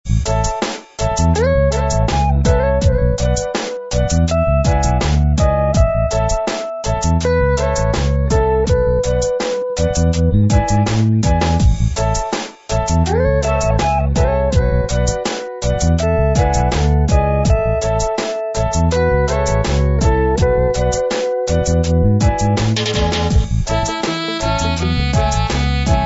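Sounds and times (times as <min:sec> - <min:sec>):
reggae music: 0:00.1 - 0:26.0.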